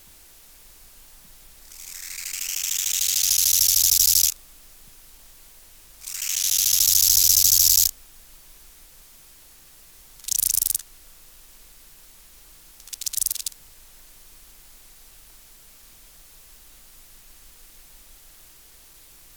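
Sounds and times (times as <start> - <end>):
bow-winged grasshopper song: 1.6 - 4.4, 6.0 - 7.9, 10.2 - 10.8, 12.8 - 13.6.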